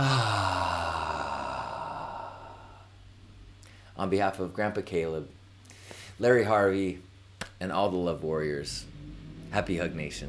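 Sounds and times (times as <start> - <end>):
group of people sighing out a breath together: 0.0 - 2.9
speech: 4.0 - 5.4, 6.2 - 8.9, 9.5 - 10.2.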